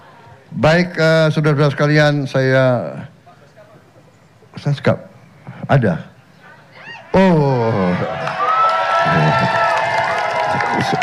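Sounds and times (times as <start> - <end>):
speech: 0.5 - 3.1, 4.6 - 5.1, 5.7 - 6.1, 7.1 - 8.4, 10.8 - 11.0
crowd shouting and cheering: 6.6 - 11.0.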